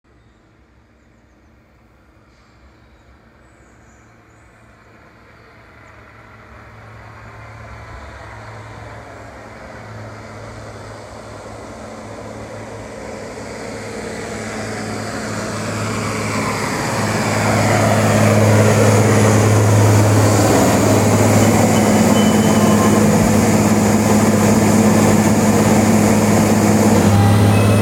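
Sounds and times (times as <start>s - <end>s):
SBB H3 shunting locomotive engine drone in Furttal: 4.1s - 27.8s
thin high whine: 21.2s - 27.8s.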